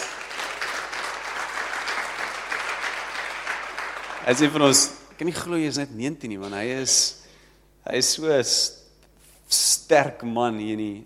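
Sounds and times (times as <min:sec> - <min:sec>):
audience applause: 0:00.0 - 0:04.9
speech: 0:04.2 - 0:07.2, 0:07.8 - 0:08.8, 0:09.5 - 0:11.0.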